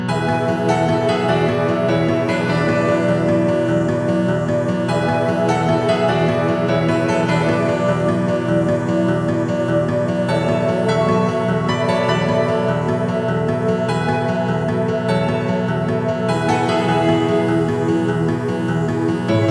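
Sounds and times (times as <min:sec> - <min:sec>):
chiptune music: 0:00.1 - 0:19.4.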